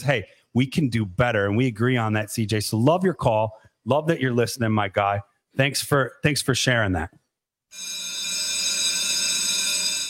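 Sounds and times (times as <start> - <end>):
speech: 0.0 - 8.0
bell ringing: 7.8 - 10.0.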